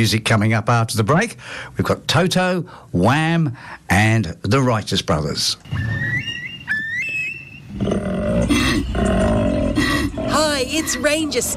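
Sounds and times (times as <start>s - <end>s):
speech: 0.0s - 6.4s, 10.6s - 11.5s
bird whistling calls: 5.6s - 7.8s
male koala breeding bellow: 5.7s - 11.5s.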